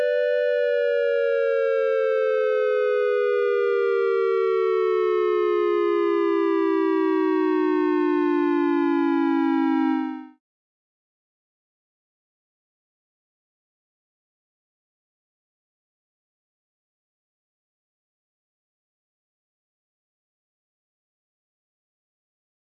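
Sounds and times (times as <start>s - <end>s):
synthesised siren caution alert for attack or large fire evacuation: 0.0s - 10.4s.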